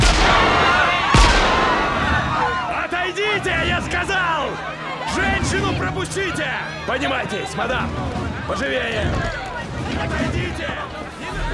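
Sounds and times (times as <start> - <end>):
officer firing a gun into the air on a ship's deck: 0.0 - 2.1
crowd noise of people crushing before lifeboats on a ship's decks: 0.0 - 11.5
speech: 6.0 - 11.0.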